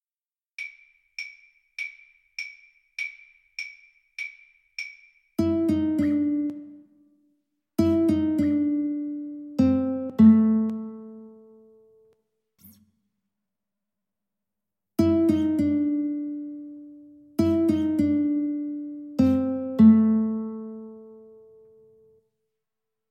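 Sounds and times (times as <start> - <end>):
guitar duet: 5.4 - 7.0, 7.8 - 12.8, 15.0 - 22.2.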